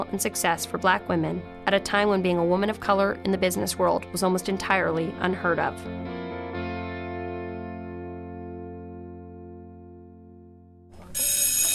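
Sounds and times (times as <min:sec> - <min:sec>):
speech: 0:00.0 - 0:06.0
bell ringing: 0:11.0 - 0:11.7.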